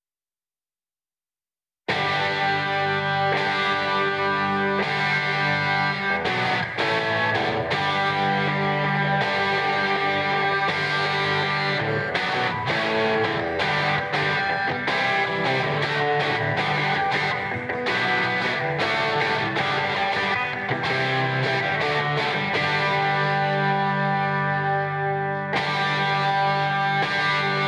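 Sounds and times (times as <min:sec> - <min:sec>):
guitar: 0:01.9 - 0:27.6.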